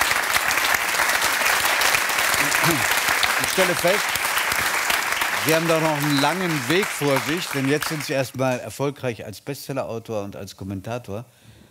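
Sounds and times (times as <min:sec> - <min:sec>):
audience applause: 0:00.0 - 0:08.6
speech: 0:02.4 - 0:04.7, 0:05.4 - 0:11.5.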